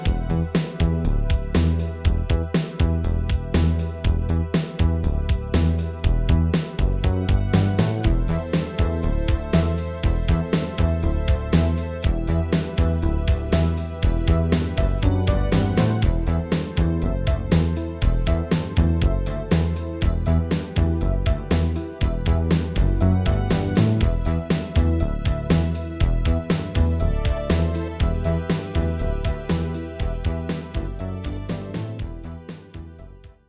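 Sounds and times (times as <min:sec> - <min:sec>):
wet bass: 0:00.1 - 0:33.2.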